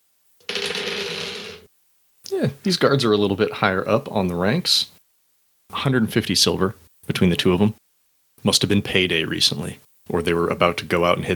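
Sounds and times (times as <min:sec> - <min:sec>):
dice being picked up: 0:00.4 - 0:01.7
speech: 0:02.4 - 0:05.0, 0:05.7 - 0:07.8, 0:08.4 - 0:11.3.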